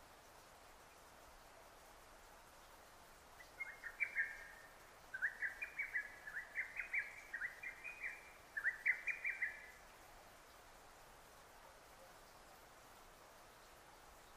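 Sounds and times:
steady background hiss: 0.0s - 14.3s
lesser cuckoo song: 3.4s - 9.8s.

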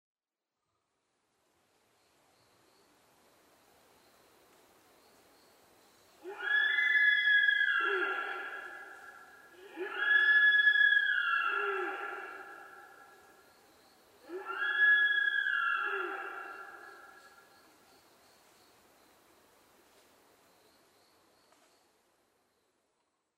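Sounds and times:
sika deer whistled calls: 6.3s - 12.6s, 14.3s - 17.0s.

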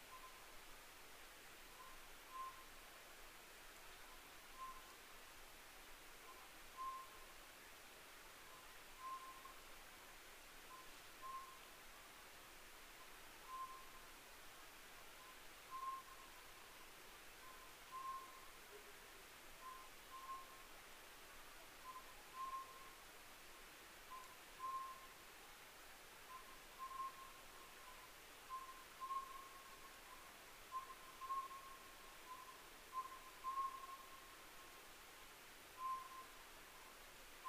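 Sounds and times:
background hiss: 0.0s - 37.4s
Oriental scops owl whistled calls: 1.8s - 2.7s, 13.5s - 14.0s, 15.2s - 16.3s, 17.4s - 18.5s, 19.6s - 20.6s, 21.8s - 23.0s, 24.1s - 25.1s, 26.3s - 34.4s, 35.8s - 36.4s.

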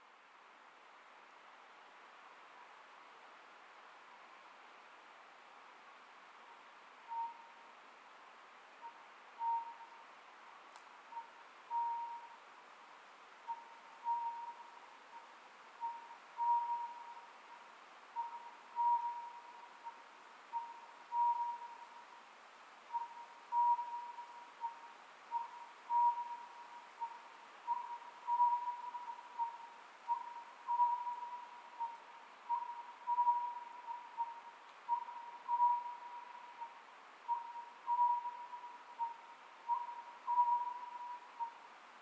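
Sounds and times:
background hiss: 0.0s - 42.0s
Oriental scops owl hooting: 7.1s - 7.6s, 8.8s - 10.0s, 11.1s - 12.4s, 13.5s - 17.6s, 18.2s - 22.2s, 22.9s - 42.0s.

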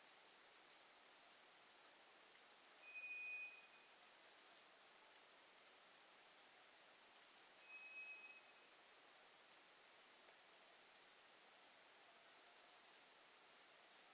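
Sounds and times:
background hiss: 0.0s - 14.1s
White's thrush whistle: 2.8s - 3.9s, 7.6s - 8.7s.

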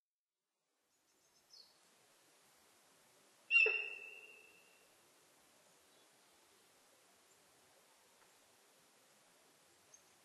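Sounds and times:
sika deer whistling: 3.5s - 4.6s.

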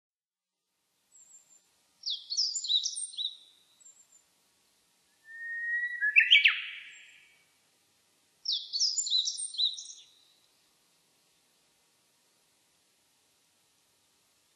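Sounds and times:
meadow bunting song: 2.0s - 4.0s, 5.3s - 7.3s, 8.5s - 10.2s.

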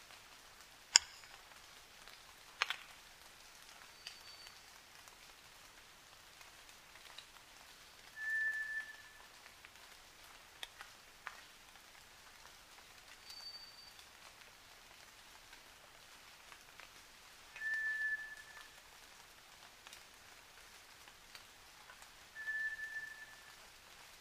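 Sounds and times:
White's thrush singing flat drawn-out whistles at night: 8.2s - 9.2s, 17.6s - 18.6s, 22.4s - 23.5s.

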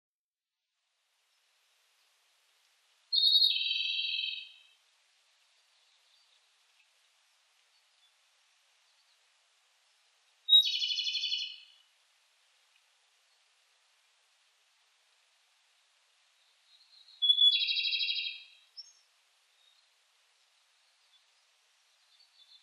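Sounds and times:
Japanese robin song with sharp high note and rattling trill: 3.2s - 4.6s, 10.5s - 11.7s, 16.9s - 19.0s.

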